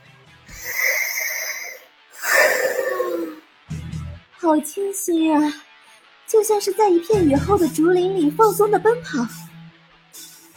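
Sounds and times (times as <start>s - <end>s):
woman breathing deeply after removing her spacesuit helmet inside a spaceship: 0.5s - 3.4s
speech: 4.4s - 5.6s, 6.3s - 9.4s.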